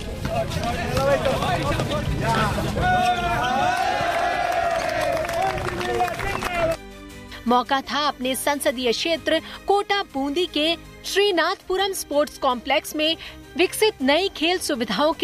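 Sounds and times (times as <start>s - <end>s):
speech: 0.4s - 3.5s, 7.5s - 15.2s
cheering voices: 2.2s - 6.8s
stadium crowd applauding: 3.5s - 6.8s.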